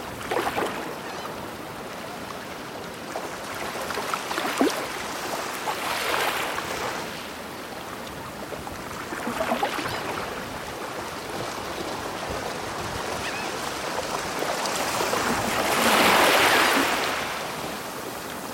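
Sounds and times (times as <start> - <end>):
ocean waves: 0.0 - 18.5.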